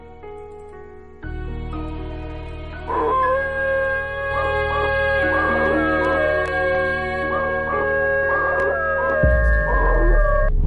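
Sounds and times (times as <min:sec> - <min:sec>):
dog howling eerily in a forest: 0:02.8 - 0:10.5.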